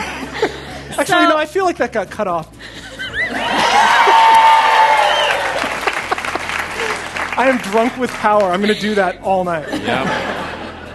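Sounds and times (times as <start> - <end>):
laughter: 0.0 - 1.1, 2.7 - 4.5, 5.4 - 10.9
speech: 1.0 - 2.6, 7.4 - 10.3
crowd cheering with whoops and shouts: 3.3 - 7.9
crowd clapping: 3.4 - 8.7.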